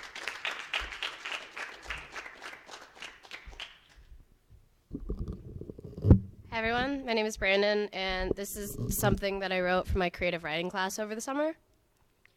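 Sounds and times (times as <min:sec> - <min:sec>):
audience applause: 0:00.0 - 0:04.0
speech: 0:06.6 - 0:11.7.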